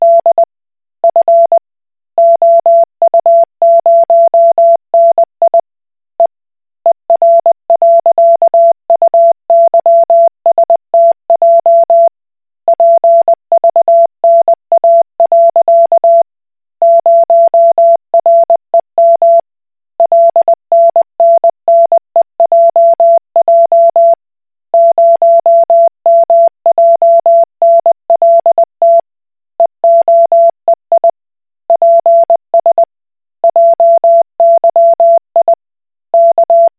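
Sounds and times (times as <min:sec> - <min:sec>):
Koch Morse code beeps: 0:00.0 - 0:00.4, 0:01.1 - 0:01.6, 0:02.2 - 0:05.6, 0:07.2 - 0:12.1, 0:12.7 - 0:16.2, 0:16.8 - 0:19.4, 0:20.0 - 0:24.2, 0:24.8 - 0:29.0, 0:29.8 - 0:31.1, 0:31.8 - 0:32.8, 0:33.4 - 0:35.6, 0:36.2 - 0:36.7.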